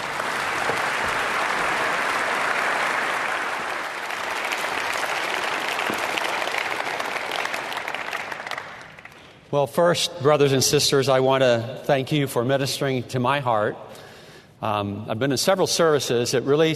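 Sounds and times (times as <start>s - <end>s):
audience applause welcoming a speaker to a church service: 0.0s - 9.3s
speech: 9.5s - 14.0s, 14.6s - 16.7s.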